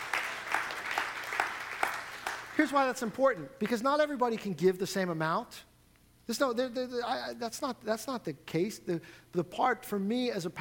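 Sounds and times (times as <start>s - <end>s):
audience clapping: 0.0s - 3.8s
speech: 2.6s - 5.7s, 6.3s - 10.5s.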